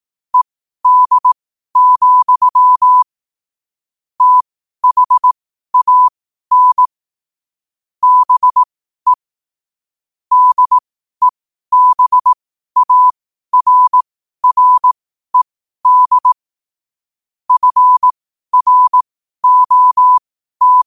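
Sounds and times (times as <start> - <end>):
morse code at 5 wpm: 0.4 - 3.0, 4.2 - 6.9, 8.0 - 9.2, 10.3 - 10.8, 11.7 - 16.4, 17.5 - 20.8.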